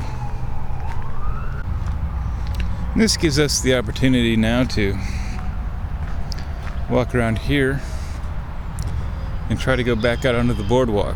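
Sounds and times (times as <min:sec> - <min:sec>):
emergency vehicle siren near a boardwalk: 0:00.0 - 0:03.0, 0:05.0 - 0:08.3
steady low traffic rumble: 0:00.0 - 0:11.1
speech: 0:03.0 - 0:05.2, 0:06.9 - 0:08.0, 0:09.5 - 0:11.1.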